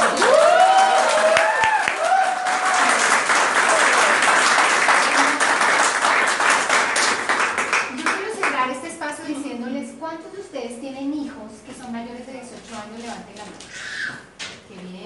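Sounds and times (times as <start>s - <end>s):
audience applause: 0.0s - 8.5s.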